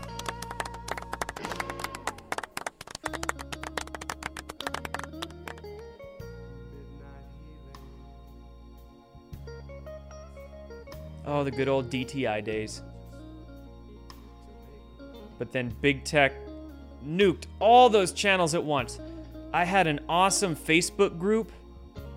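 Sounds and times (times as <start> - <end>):
clapping: 0.0 - 5.8
speech: 11.3 - 12.9, 15.4 - 21.6.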